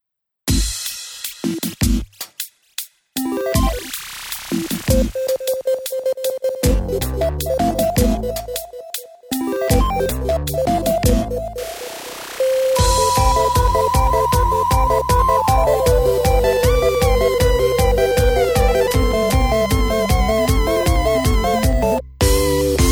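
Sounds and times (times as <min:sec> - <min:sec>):
video game pop music: 0:03.2 - 0:04.0, 0:04.7 - 0:22.9.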